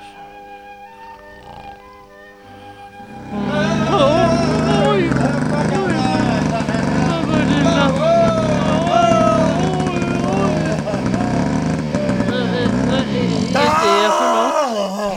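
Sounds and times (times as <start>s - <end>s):
moped engine running: 0.0s - 14.4s
laughter: 2.6s - 15.1s.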